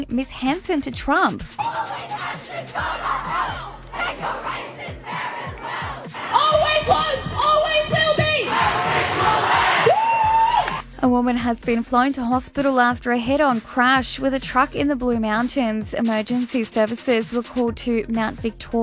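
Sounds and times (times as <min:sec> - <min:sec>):
speech: 0:00.0 - 0:03.6, 0:11.0 - 0:18.8
large crowd of protesting students chanting and shouting: 0:01.5 - 0:09.9.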